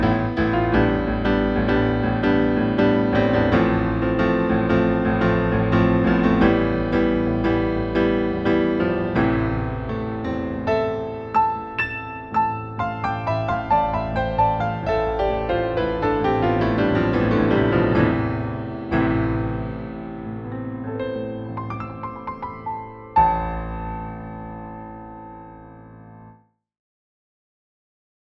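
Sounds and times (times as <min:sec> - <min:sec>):
piano riff: 0:00.0 - 0:26.3.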